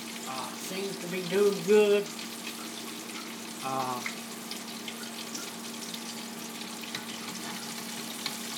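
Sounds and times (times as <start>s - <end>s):
food frying in hot oil: 0.0s - 8.5s
speech: 0.7s - 2.2s, 3.6s - 4.2s.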